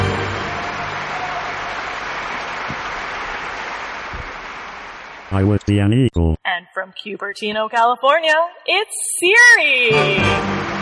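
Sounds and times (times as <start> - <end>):
audience applause: 0.0 - 5.6
speech: 5.3 - 10.6.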